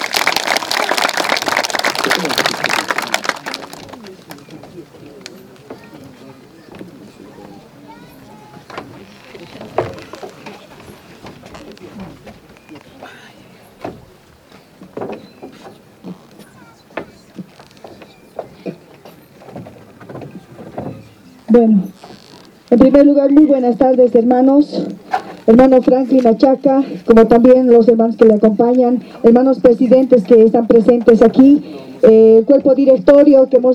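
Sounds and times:
audience applause: 0.0 - 5.3
speech: 21.6 - 21.9, 22.7 - 24.9, 25.5 - 33.7.

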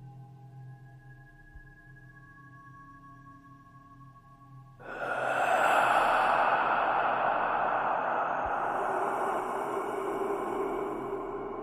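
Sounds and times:
loud forceful exhale: 4.8 - 11.6.

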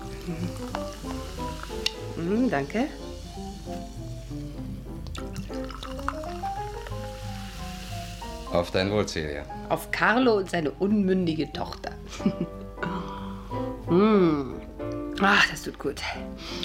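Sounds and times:
sparkling wine poured into a glass: 0.0 - 9.1
soft fizzing: 0.0 - 9.4
speech: 0.2 - 0.7, 2.2 - 3.0, 8.5 - 12.6, 13.9 - 14.5, 15.2 - 16.6.

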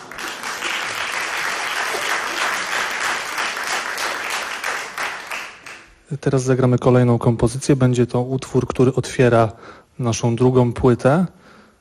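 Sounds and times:
audience applause: 0.0 - 5.9
speech: 6.1 - 11.4.

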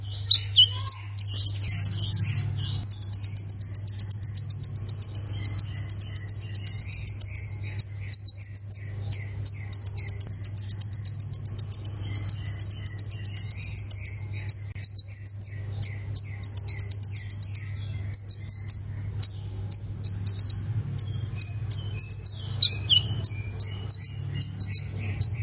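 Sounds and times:
plain prinia singing: 0.0 - 25.4
steady low hum: 0.0 - 25.4.

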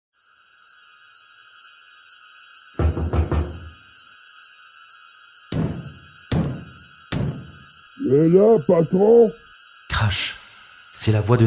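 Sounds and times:
knocking on a door: 2.8 - 3.8, 5.5 - 7.6
speech: 8.0 - 9.4, 10.0 - 10.4, 11.0 - 11.4.

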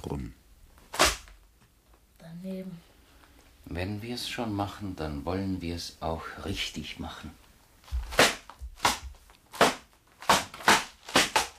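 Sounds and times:
mirror smashing into pieces during a flailing fight: 0.8 - 1.3, 7.9 - 11.5
speech: 3.8 - 8.0.

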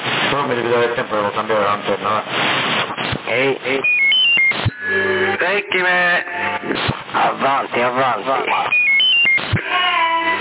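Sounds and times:
speech: 0.3 - 8.8
telephone beeping: 3.8 - 6.7, 8.7 - 9.6.

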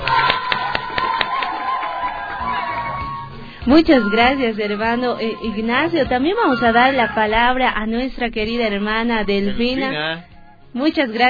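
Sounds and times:
audience applause: 0.0 - 4.4
speech: 3.6 - 11.2.

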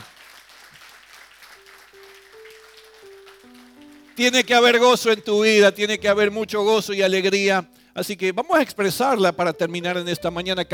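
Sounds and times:
crowd clapping: 0.0 - 5.2
speech: 4.2 - 10.7.

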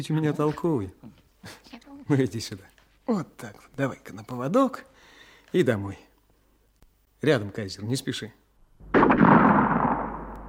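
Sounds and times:
speech: 0.0 - 4.9, 5.5 - 6.1, 7.2 - 8.9
gunshot fired at a wolf cub: 8.8 - 10.4.

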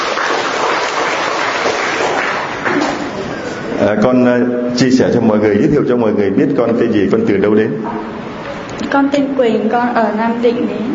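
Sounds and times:
crowd clapping: 0.0 - 3.3
speech: 3.8 - 8.2, 8.9 - 10.9.

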